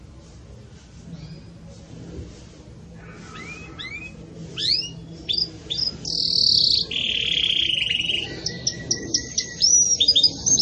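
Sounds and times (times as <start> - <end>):
canary song: 3.2 - 10.6.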